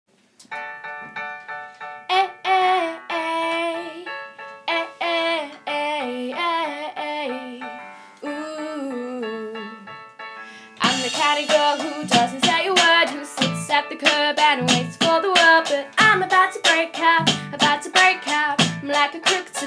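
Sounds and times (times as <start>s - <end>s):
singer singing: 2.1s - 4.1s, 4.7s - 9.9s, 10.8s - 19.6s
backing track: 10.8s - 19.6s
drums: 10.8s - 19.6s.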